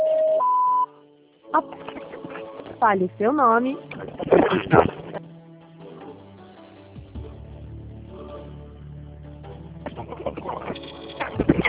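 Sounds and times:
electronic voicemail recording tone: 0:00.0 - 0:00.9
speech: 0:01.5 - 0:01.9, 0:02.8 - 0:05.0.

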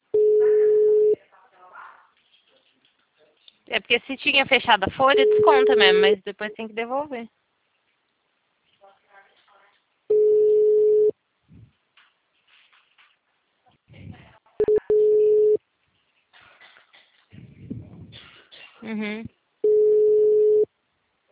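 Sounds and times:
VoIP telephone ringback tone of an unanswered call: 0:00.2 - 0:01.2, 0:05.2 - 0:06.0, 0:10.1 - 0:11.1, 0:14.6 - 0:15.6, 0:19.6 - 0:20.7
speech: 0:03.8 - 0:07.4, 0:18.8 - 0:19.4.

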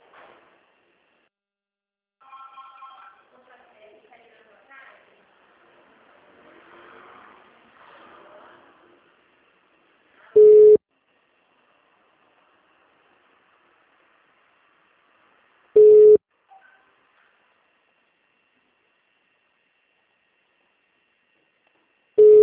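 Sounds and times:
ringback tone of an outgoing telephone call: 0:10.4 - 0:10.8, 0:15.8 - 0:16.2, 0:22.2 - 0:22.4.

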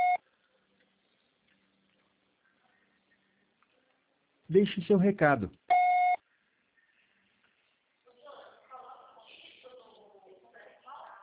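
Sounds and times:
voicemail beep: 0:00.0 - 0:00.2, 0:05.7 - 0:06.2
speech: 0:04.5 - 0:05.7.

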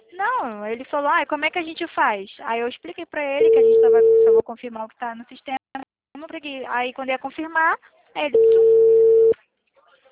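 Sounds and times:
speech: 0:00.2 - 0:05.6, 0:06.2 - 0:08.8
telephone tone of an unanswered call: 0:03.4 - 0:04.4, 0:08.3 - 0:09.4.

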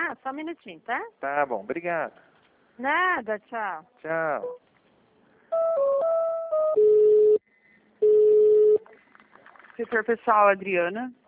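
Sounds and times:
speech: 0:00.1 - 0:04.6, 0:09.8 - 0:11.2
telephone line ring tone: 0:05.6 - 0:07.4, 0:08.0 - 0:08.8.

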